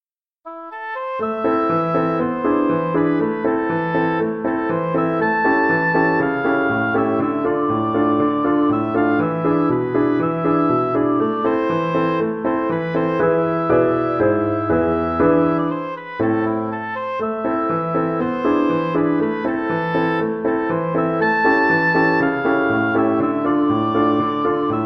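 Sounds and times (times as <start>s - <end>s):
oboe playing folk melody: 0.5s - 24.8s.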